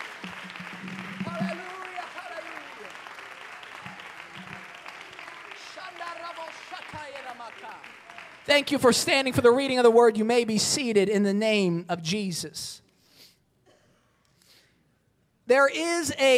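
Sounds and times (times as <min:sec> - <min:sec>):
audience hand clapping: 0:00.0 - 0:09.5
speech: 0:08.5 - 0:12.8, 0:15.5 - 0:16.3.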